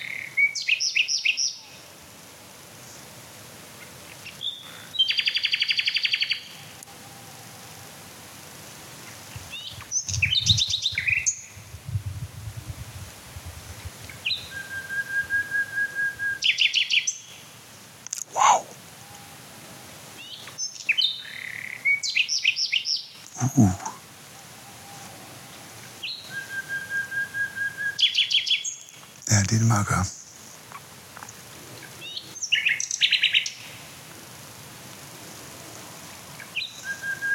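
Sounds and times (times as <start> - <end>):
Common Nightingale song: 0.0 - 1.9, 4.1 - 7.6, 9.1 - 11.7, 14.0 - 19.2, 20.2 - 25.1, 25.8 - 33.8, 36.4 - 37.3
speech: 23.6 - 23.8, 29.6 - 30.2.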